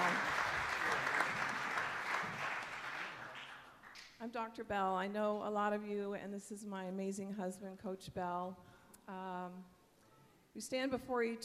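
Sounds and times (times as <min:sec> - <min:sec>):
audience applause: 0:00.0 - 0:04.0
speech: 0:04.4 - 0:09.8, 0:10.6 - 0:11.4.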